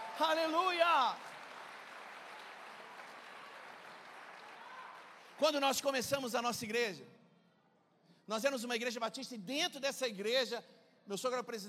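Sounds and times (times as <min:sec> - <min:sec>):
audience applause: 0:00.0 - 0:05.6
speech: 0:00.2 - 0:01.4, 0:05.4 - 0:07.2, 0:08.3 - 0:11.6.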